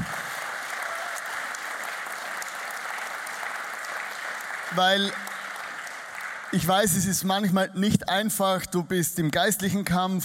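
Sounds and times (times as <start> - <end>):
audience applause: 0.0 - 7.2
speech: 4.7 - 5.2, 6.5 - 10.2.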